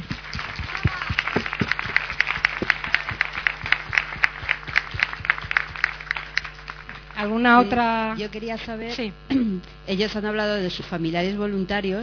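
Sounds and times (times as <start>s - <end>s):
audience applause: 0.0s - 7.6s
speech: 7.2s - 12.0s.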